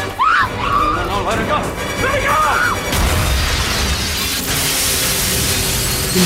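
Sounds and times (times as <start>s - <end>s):
people shouting: 0.0s - 1.3s, 2.1s - 2.9s
explosion of a hostage in a film scene: 1.0s - 6.2s.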